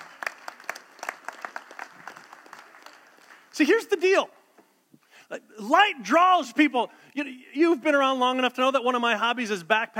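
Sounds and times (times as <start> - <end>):
audience applause: 0.0 - 3.6
speech: 3.6 - 4.4, 5.3 - 9.9.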